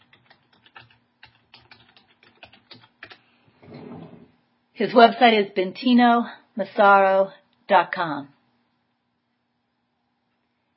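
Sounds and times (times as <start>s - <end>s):
person typing a website address on a computer keyboard: 0.0s - 3.2s
speech: 4.8s - 8.4s.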